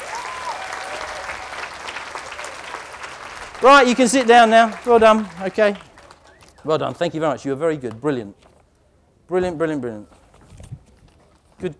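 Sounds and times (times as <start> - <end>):
crowd applauding: 0.0 - 6.5
speech: 3.6 - 5.9, 6.6 - 8.5, 9.3 - 10.2, 11.6 - 11.7.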